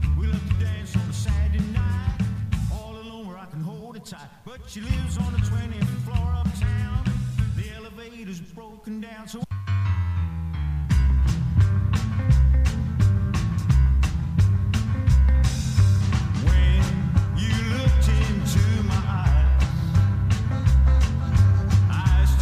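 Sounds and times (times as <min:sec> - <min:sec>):
drum backbeat: 0:00.0 - 0:02.8, 0:04.9 - 0:07.8, 0:10.9 - 0:22.4.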